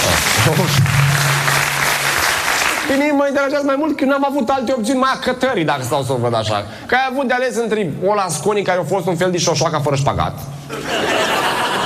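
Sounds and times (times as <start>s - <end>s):
audience applauding at a live discussion: 0.0s - 3.1s
speech: 2.9s - 11.4s
laughter: 10.7s - 11.8s.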